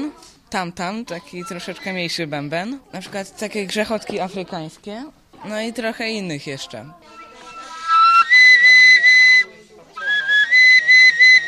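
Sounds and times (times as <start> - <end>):
speech: 0.5 - 7.2
homemade PVC pipe whistle playing shrill steady tones: 7.1 - 11.4.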